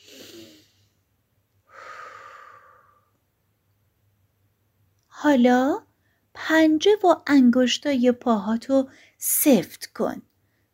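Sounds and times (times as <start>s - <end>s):
deep breath drawn in through the nose during a guided relaxation exercise: 0.0s - 1.0s, 1.7s - 3.1s
speech: 5.2s - 5.8s, 6.4s - 10.3s.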